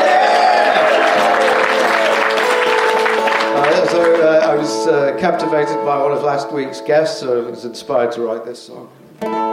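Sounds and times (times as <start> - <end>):
audience applause for a performer at a comedy stage show: 0.0 - 4.7
crowd noise: 0.0 - 6.7
speech: 4.9 - 9.4.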